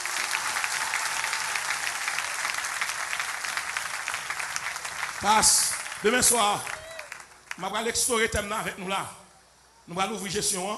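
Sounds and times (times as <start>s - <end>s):
audience applauding: 0.0s - 7.8s
speech: 5.2s - 6.8s, 7.6s - 9.2s, 9.9s - 10.7s.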